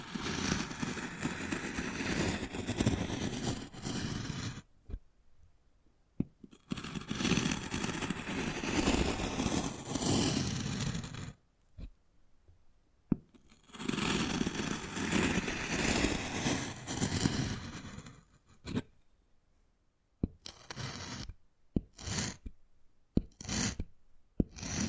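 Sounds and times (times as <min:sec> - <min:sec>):
wood carving scraping and rasping: 0:00.0 - 0:05.0, 0:06.5 - 0:11.9, 0:13.3 - 0:18.9, 0:20.3 - 0:22.6, 0:23.2 - 0:24.8.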